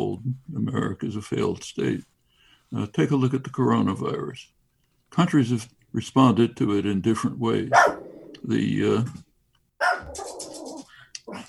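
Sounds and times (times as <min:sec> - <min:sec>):
speech: 0:00.3 - 0:02.1, 0:02.7 - 0:09.2
dog barking: 0:07.7 - 0:08.3, 0:09.8 - 0:10.8.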